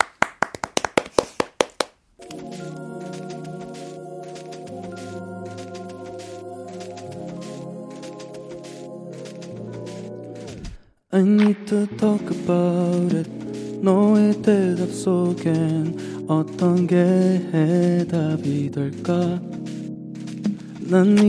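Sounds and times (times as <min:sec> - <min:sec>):
audience clapping: 0:00.0 - 0:02.4
speech: 0:11.2 - 0:19.5, 0:20.9 - 0:21.2.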